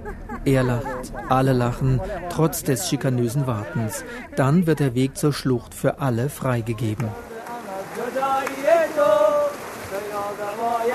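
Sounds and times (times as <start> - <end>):
laughter: 0.0 - 4.9
speech: 0.0 - 7.3, 8.3 - 10.9
fast-flowing water in a narrow gorge: 7.2 - 10.9.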